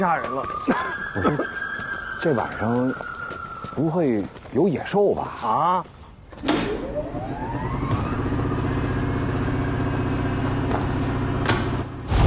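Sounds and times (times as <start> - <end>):
speech: 0.0 - 1.6, 2.2 - 3.1, 3.8 - 6.6
power generator engine running: 6.4 - 12.1.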